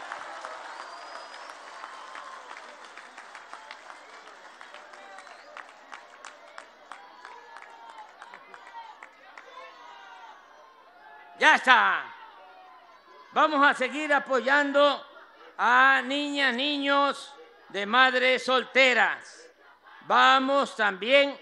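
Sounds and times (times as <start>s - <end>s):
audience applause: 0.0s - 10.4s
speech: 11.4s - 12.1s, 13.4s - 19.4s, 20.1s - 21.3s.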